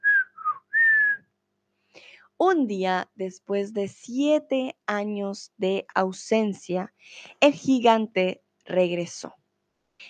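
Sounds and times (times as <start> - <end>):
human whistle imitating birdsong: 0.0 - 1.3
speech: 2.4 - 9.4.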